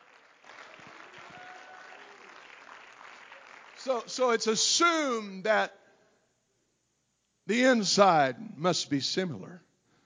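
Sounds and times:
audience hand clapping: 0.0 - 4.1
speech: 3.8 - 5.8, 7.5 - 9.7.

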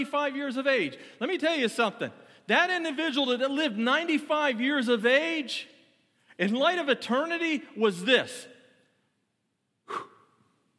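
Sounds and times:
speech: 0.0 - 5.8, 6.4 - 8.5
preacher exhaling during a funeral sermon: 9.8 - 10.5.

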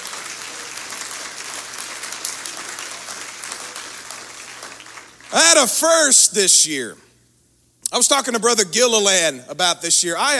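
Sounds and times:
audience clapping hands: 0.0 - 5.9
speech: 5.3 - 7.0, 7.9 - 10.3.

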